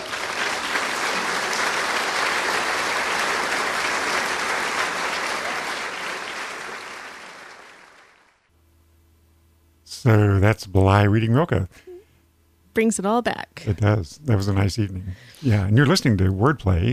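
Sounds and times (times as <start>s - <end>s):
audience clapping: 0.0s - 8.5s
speech: 10.0s - 11.9s, 12.8s - 16.9s.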